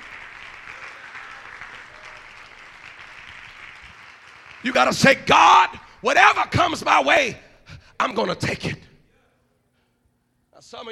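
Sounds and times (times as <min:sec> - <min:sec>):
crowd clapping: 0:00.0 - 0:05.8
speech: 0:04.6 - 0:07.4, 0:08.0 - 0:08.8, 0:10.7 - 0:10.9.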